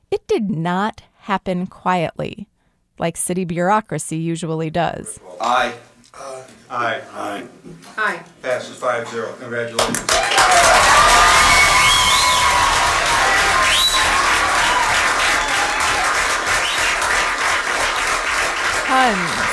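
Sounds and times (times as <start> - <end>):
speech: 0.3 - 12.2, 18.9 - 19.5
crowd applauding: 9.8 - 19.5
cheering shouts and whoops: 10.1 - 17.0.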